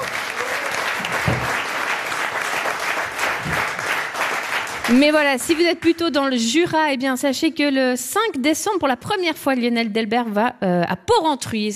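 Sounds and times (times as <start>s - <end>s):
audience applause: 0.0s - 5.6s
speech: 4.9s - 11.7s.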